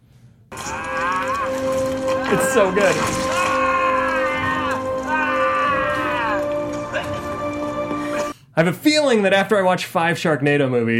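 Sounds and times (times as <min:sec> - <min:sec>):
feral scream sound clip: 0:00.5 - 0:08.2
speech: 0:02.3 - 0:03.3, 0:08.6 - 0:10.9.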